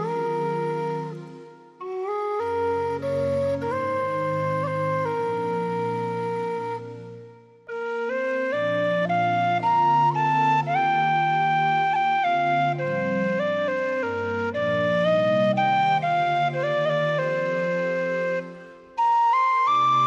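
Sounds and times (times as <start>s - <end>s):
solo tin whistle playing a hymn: 0.0s - 20.0s.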